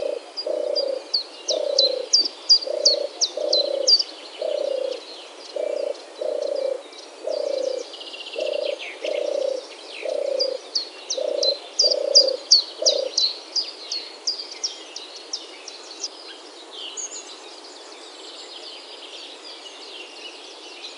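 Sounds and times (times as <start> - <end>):
European Turtle Dove purring: 0.0 - 13.2.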